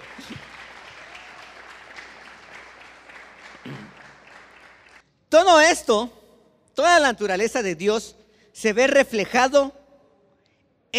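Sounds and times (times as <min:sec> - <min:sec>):
crowd clapping: 0:00.0 - 0:05.1
speech: 0:05.4 - 0:06.2, 0:06.8 - 0:09.8.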